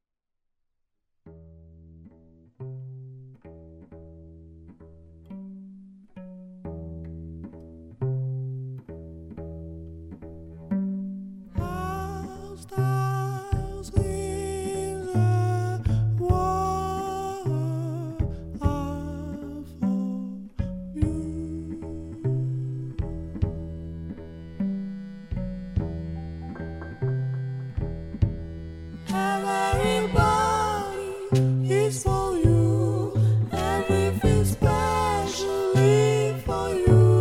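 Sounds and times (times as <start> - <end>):
lyrical jazz: 10.8 - 37.2.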